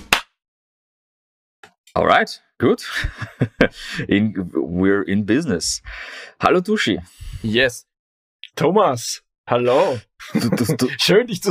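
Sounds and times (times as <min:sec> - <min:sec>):
hand clap: 0:00.0 - 0:00.3
speech: 0:02.0 - 0:07.9, 0:08.6 - 0:11.4
laughter: 0:02.8 - 0:04.2, 0:09.7 - 0:11.4
faint voice murmur: 0:09.7 - 0:10.0.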